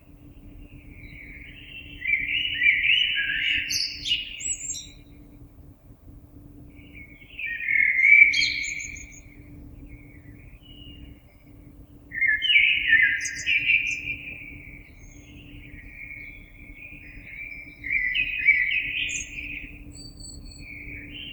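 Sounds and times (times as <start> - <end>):
blackbird: 1.0 - 5.1, 6.9 - 9.3, 12.1 - 21.3.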